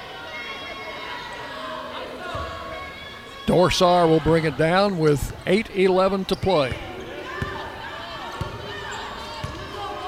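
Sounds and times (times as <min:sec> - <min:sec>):
crowd roar and talk at a Raiders basketball game: 0:00.0 - 0:10.0
speech: 0:03.5 - 0:06.9
basketball dribbled on a court during a Raiders game: 0:06.4 - 0:07.7, 0:08.3 - 0:09.8.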